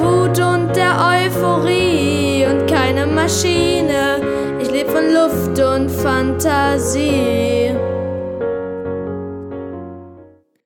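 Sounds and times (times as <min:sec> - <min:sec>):
person singing: 0:00.0 - 0:08.1.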